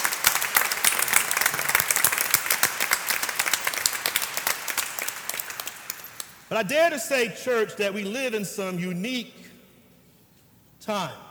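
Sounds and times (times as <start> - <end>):
audience applause for veterans: 0.0 - 6.5
speech: 6.5 - 9.4, 10.9 - 11.3.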